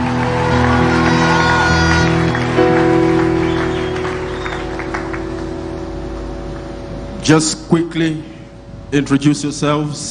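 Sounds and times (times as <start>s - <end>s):
audience clapping: 0.0s - 6.9s
sustained keyboard chords: 0.0s - 10.0s
speech: 7.3s - 10.0s.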